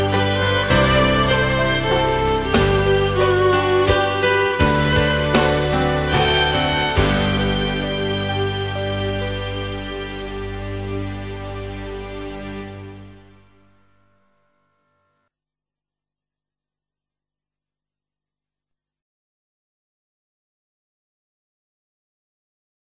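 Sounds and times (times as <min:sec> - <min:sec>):
violin: 0:00.0 - 0:13.8.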